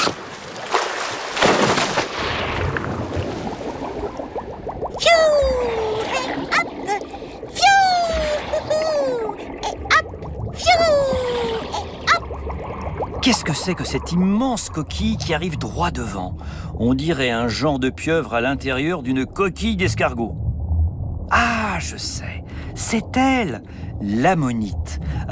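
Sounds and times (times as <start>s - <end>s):
splash of someone diving into water: 0.0s - 16.7s
underwater rumble: 2.6s - 25.3s
speech: 13.6s - 20.4s, 21.8s - 25.3s.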